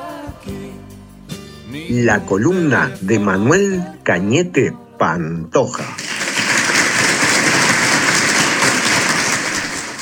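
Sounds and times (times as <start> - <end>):
speech: 1.8 - 6.0
applause: 5.8 - 10.0.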